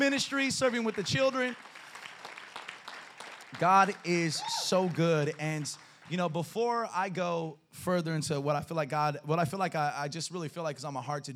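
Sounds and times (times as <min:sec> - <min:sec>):
speech: 0:00.0 - 0:01.8, 0:03.5 - 0:11.3
audience applause: 0:00.0 - 0:06.4.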